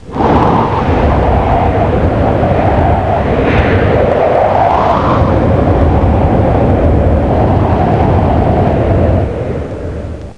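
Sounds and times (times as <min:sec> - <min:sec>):
strong wind: 0:00.0 - 0:10.3.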